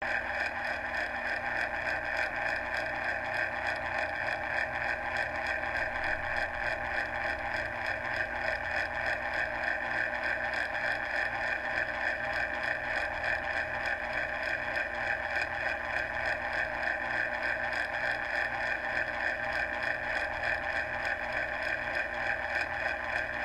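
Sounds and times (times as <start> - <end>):
old electric clock: 0.0 - 23.4.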